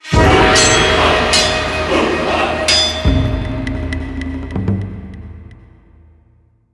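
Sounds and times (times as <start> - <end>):
jingle: 0.0 - 4.6.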